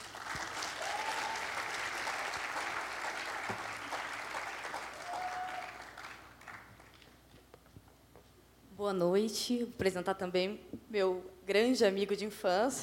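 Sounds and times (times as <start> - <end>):
audience applause: 0.0 - 7.0
speech: 8.8 - 12.8.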